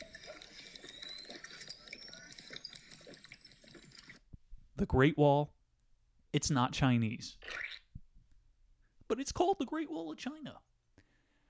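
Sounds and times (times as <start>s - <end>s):
person sipping a drink: 0.0s - 4.3s, 7.4s - 7.9s
speech: 4.8s - 5.6s, 6.3s - 7.4s, 9.1s - 10.7s.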